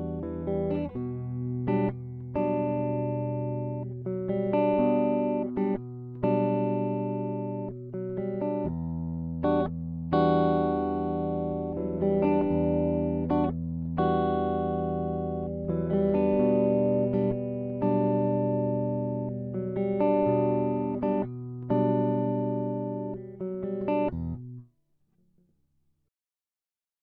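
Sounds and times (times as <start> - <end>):
jazz guitar riff in E minor: 0.0 - 24.6.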